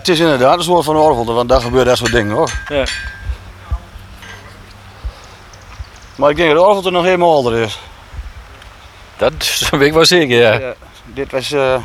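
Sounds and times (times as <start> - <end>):
speech: 0.0 - 3.2, 6.2 - 7.9, 9.2 - 11.8
murmur: 0.0 - 11.8
blacksmith hammering metal: 1.5 - 4.7.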